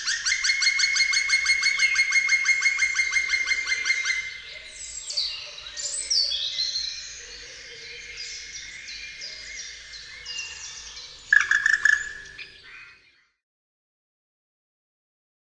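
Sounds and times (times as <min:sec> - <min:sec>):
black woodpecker calling: 0:00.0 - 0:04.4, 0:09.6 - 0:13.0.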